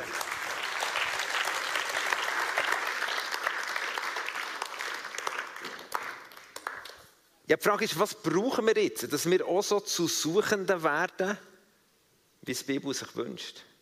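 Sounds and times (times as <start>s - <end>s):
audience applause: 0.0s - 7.0s
speech: 7.5s - 11.5s, 12.5s - 13.7s.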